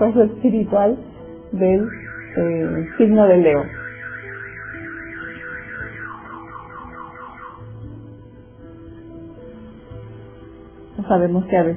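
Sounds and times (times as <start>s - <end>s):
speech: 0.0s - 3.8s, 11.1s - 11.7s
car alarm blaring: 1.6s - 8.0s.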